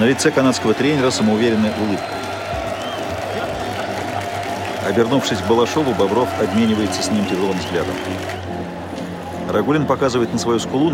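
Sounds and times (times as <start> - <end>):
speech: 0.0 - 2.2, 4.8 - 8.5, 9.5 - 10.9
standing ovation applause in a hockey arena: 0.0 - 8.7.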